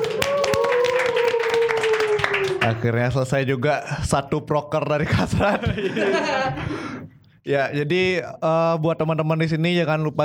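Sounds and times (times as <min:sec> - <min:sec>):
audience clapping: 0:00.0 - 0:03.0
speech: 0:02.6 - 0:10.2
laughter: 0:05.0 - 0:06.8.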